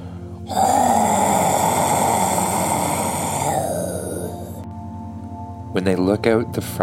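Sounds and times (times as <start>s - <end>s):
Tyrannosaurus rex roar: 0.5s - 4.6s
speech: 5.8s - 6.8s.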